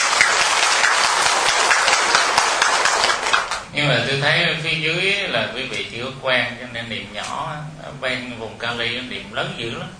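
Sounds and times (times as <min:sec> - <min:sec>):
large crowd clapping: 0:00.0 - 0:03.7
speech: 0:03.8 - 0:09.9.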